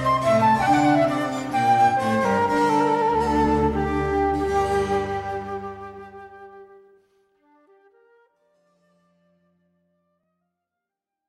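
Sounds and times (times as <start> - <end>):
flute sonata with basso continuo: 0.0 - 7.0.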